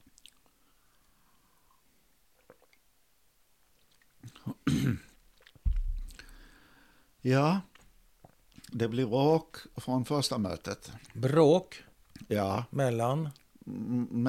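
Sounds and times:
person drinking water: 0.0 - 2.8, 3.7 - 6.8
speech: 4.4 - 5.1, 7.2 - 7.7, 8.7 - 14.2.

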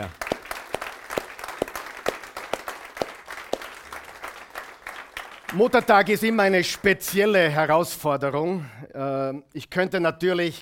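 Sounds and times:
speech: 0.0 - 0.3, 5.5 - 10.6
crowd applauding: 0.0 - 7.4.

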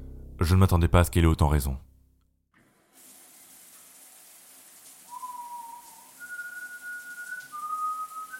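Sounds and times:
speech: 0.4 - 1.9
running shower water: 2.6 - 8.3
person whistling an odd wandering tune: 5.1 - 8.3.

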